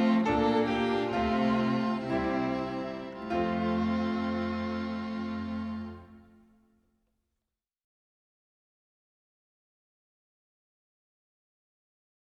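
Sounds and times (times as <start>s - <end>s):
instrumental hymn: 0.0s - 6.5s.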